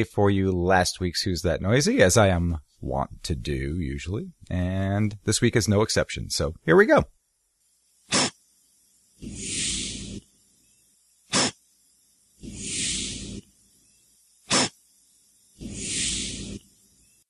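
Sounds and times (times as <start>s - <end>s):
speech: 0.0s - 7.2s
devil's urn cup fungus hissing out spores: 8.0s - 8.4s, 9.1s - 10.3s, 11.2s - 11.6s, 12.4s - 17.2s.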